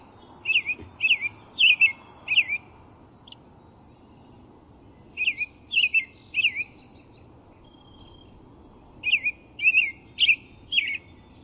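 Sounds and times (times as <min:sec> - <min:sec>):
American robin song: 0:00.0 - 0:11.4.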